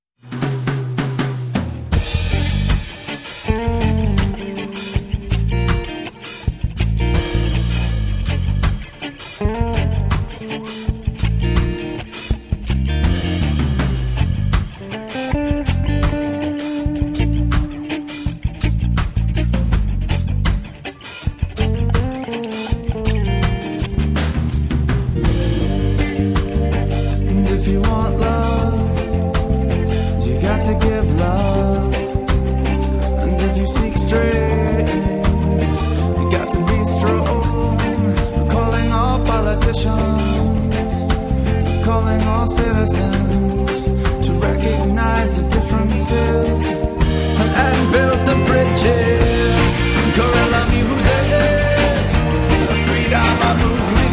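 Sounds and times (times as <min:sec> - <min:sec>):
drum school music: 0:00.2 - 0:54.1.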